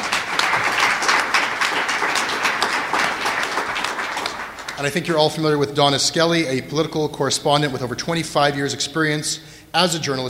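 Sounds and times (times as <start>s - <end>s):
audience applause: 0.0s - 5.0s
speech: 4.8s - 10.2s.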